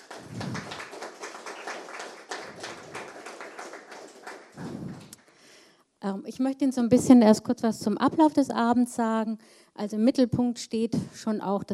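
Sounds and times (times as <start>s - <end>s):
audience applause: 0.0s - 5.2s
speech: 6.0s - 11.7s.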